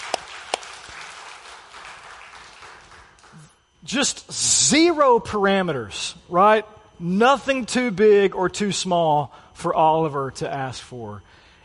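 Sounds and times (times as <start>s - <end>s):
round of applause: 0.0s - 3.6s
speech: 3.4s - 11.4s.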